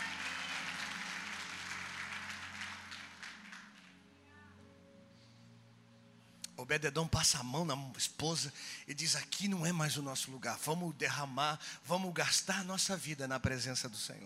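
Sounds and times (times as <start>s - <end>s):
crowd applauding: 0.0s - 4.2s
speech: 6.6s - 14.2s.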